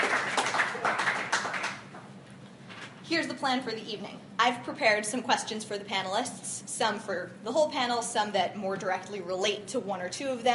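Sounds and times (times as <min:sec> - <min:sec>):
modest round of applause for the panelists at an evening panel discussion: 0:00.0 - 0:02.0
speech: 0:03.1 - 0:10.5.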